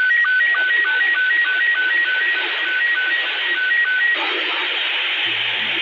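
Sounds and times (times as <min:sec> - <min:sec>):
SSTV satellite transmission signal tones of a moon picture: 0:00.1 - 0:05.7.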